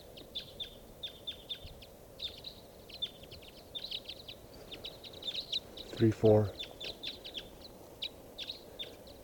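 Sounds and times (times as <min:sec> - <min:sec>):
flock of birds calling: 0:00.0 - 0:09.2
speech: 0:06.0 - 0:06.6.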